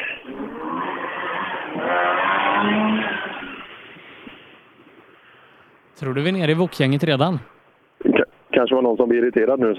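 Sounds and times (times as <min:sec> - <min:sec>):
tuned car crossing the finish line: 0:00.0 - 0:05.2
speech: 0:06.0 - 0:07.6, 0:08.6 - 0:09.7.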